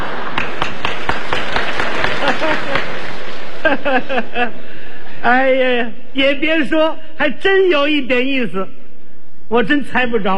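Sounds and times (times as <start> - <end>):
audience clapping: 0.0 - 3.8
laughter: 1.9 - 4.9
speech: 3.6 - 8.8, 9.5 - 10.3.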